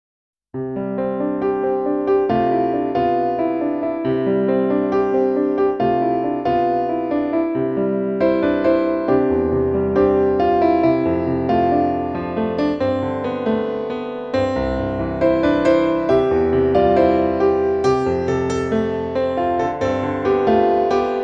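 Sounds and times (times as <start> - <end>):
piano music: 0.6 - 21.2.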